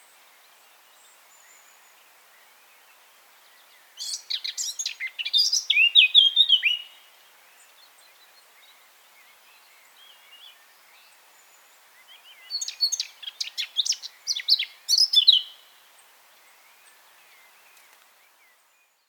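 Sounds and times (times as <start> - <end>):
Eurasian blackcap song: 0.0 - 19.0.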